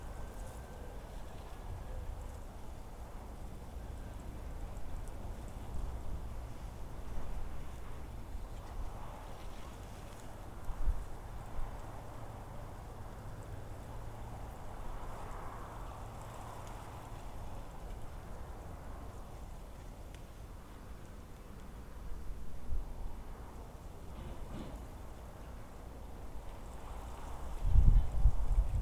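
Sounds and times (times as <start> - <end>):
desert wind: 0.0 - 28.8.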